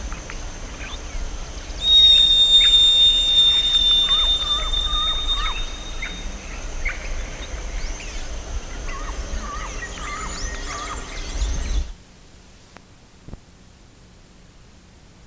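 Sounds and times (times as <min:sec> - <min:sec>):
steady low rumbling background: 0:00.0 - 0:12.6
short hooked bird chirps: 0:01.7 - 0:08.3, 0:08.9 - 0:11.9
higher squeaky notes from other birds: 0:01.8 - 0:06.3.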